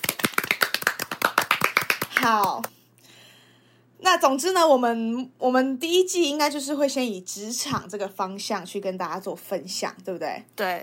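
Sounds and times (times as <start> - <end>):
hand clapping: 0.0 - 2.7
speech: 2.2 - 2.8, 4.0 - 10.8.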